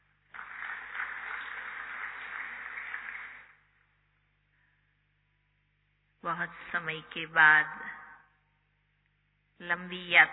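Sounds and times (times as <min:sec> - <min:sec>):
crowd applauding: 0:00.0 - 0:03.7
speech: 0:06.2 - 0:07.9, 0:09.6 - 0:10.3.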